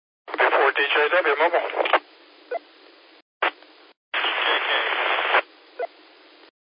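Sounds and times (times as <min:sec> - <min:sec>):
radio transmission with white noise: 0:00.3 - 0:02.1, 0:03.4 - 0:03.6, 0:04.2 - 0:06.0
speech: 0:00.8 - 0:01.8.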